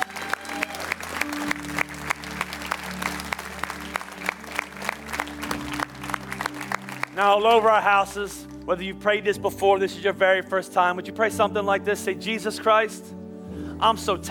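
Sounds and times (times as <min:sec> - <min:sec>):
audience clapping in rhythm: 0:00.0 - 0:08.7
speech: 0:07.2 - 0:13.2, 0:13.8 - 0:14.2.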